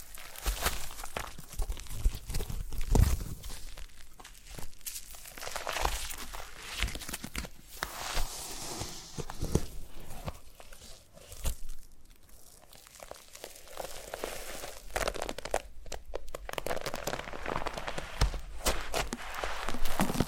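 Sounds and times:
foam massaged and squeezed, crinkling and squishing: 0.0 - 20.2.

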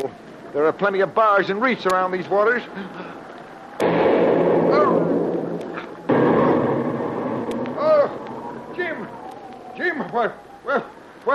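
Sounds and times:
speech: 0.0 - 3.2, 10.1 - 11.3
artillery shell exploding nearby: 3.8 - 9.2.

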